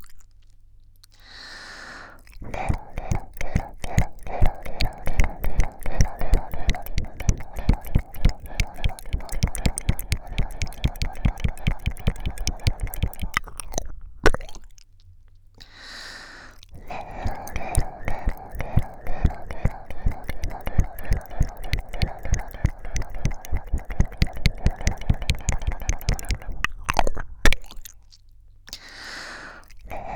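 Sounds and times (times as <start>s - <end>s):
licking sounds: 2.5s - 14.4s, 17.2s - 27.8s.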